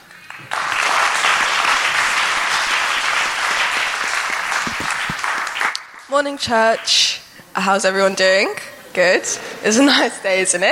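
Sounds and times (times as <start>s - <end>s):
church congregation applauding the teens: 0.0s - 7.0s
speech: 6.1s - 10.7s.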